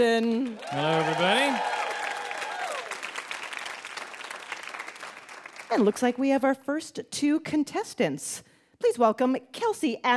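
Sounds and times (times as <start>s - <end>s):
speech: 0.0s - 1.8s, 5.7s - 10.1s
audience applause welcoming a one-man house band onto a live show: 0.4s - 6.0s.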